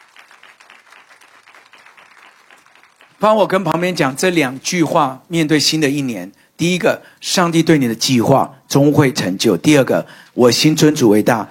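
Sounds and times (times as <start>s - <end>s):
audience clapping: 0.0s - 4.0s
speech: 3.2s - 11.4s.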